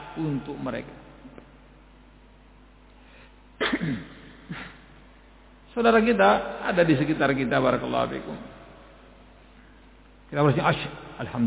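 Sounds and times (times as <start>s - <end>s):
faint steady hum: 0.0s - 11.4s
speech: 0.2s - 1.1s, 3.8s - 4.6s, 5.8s - 8.6s, 10.3s - 11.4s
audience member at an Islamic lecture sneezing: 3.6s - 4.9s.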